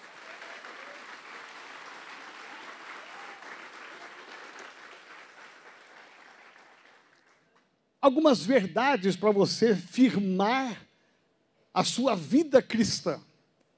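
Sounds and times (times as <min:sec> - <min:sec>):
audience applause: 0:00.0 - 0:07.6
speech: 0:08.0 - 0:10.8, 0:11.8 - 0:13.3.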